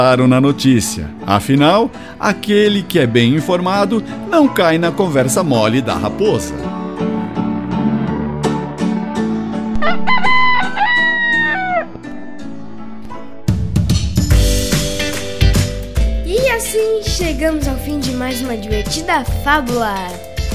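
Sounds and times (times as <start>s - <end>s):
speech: 0.0s - 6.8s, 18.3s - 20.3s
busy rhythmic music: 0.0s - 20.5s
rooster crowing: 8.6s - 12.0s.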